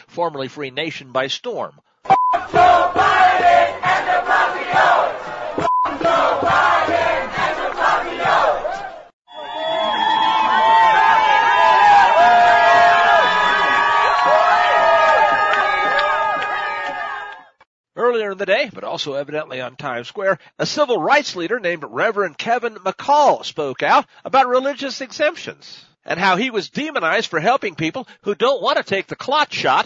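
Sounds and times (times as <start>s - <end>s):
speech: 0.2s - 5.2s, 18.4s - 29.8s
large crowd chanting in the street: 2.3s - 17.4s.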